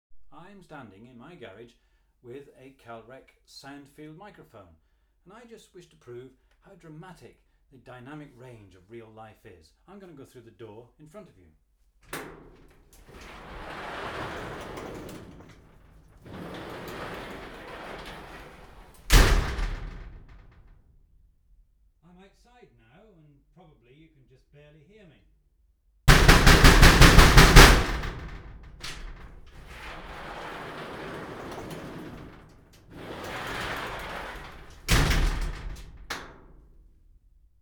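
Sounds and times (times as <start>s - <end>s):
garage door: 12.1s - 20.8s, 26.1s - 37.5s.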